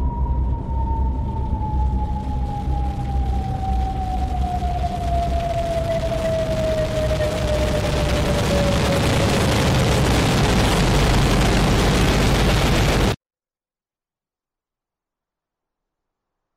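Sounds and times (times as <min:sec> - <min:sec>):
atomic bomb explosion roar and rumble: 0:00.0 - 0:13.2
high whine dropping in pitch: 0:00.0 - 0:13.2.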